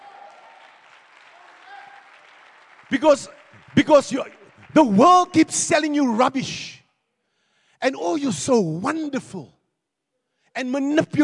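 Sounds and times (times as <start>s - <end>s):
audience clapping: 0.0s - 5.9s
speech: 2.9s - 6.8s, 7.8s - 9.6s, 10.6s - 11.2s.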